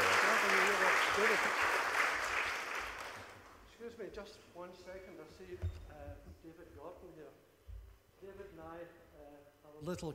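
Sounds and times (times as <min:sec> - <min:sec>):
audience applause: 0:00.0 - 0:03.5
speech: 0:04.1 - 0:07.5, 0:08.2 - 0:10.1.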